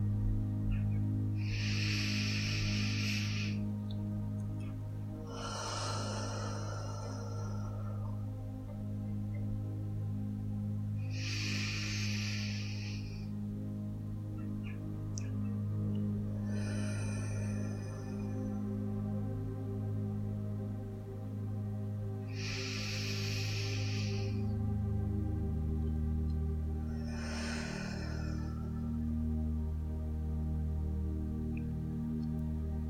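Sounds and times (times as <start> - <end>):
steady low hum: 0.0 - 32.8
slow deep breathing in through nose and out through mouth: 1.2 - 19.7, 22.0 - 25.5, 26.3 - 29.4.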